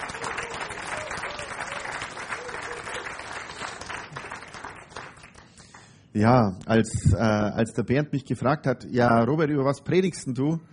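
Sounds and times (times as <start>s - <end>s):
audience applauding: 0.0s - 5.9s
speech: 6.2s - 10.7s.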